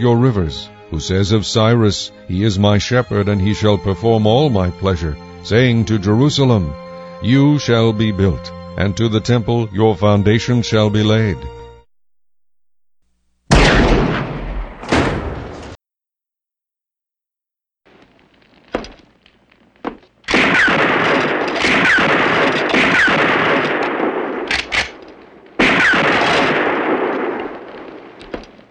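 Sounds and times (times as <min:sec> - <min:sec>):
speech: 0:00.0 - 0:11.6
gunshots: 0:13.5 - 0:15.8, 0:18.7 - 0:19.2, 0:19.9 - 0:28.6.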